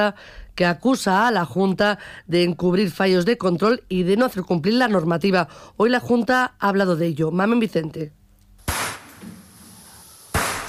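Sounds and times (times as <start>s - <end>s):
speech: 0.0s - 8.2s
gunshots from a video of fawns being shot at a slaughterhouse in Segovia: 8.6s - 9.3s, 10.3s - 10.6s.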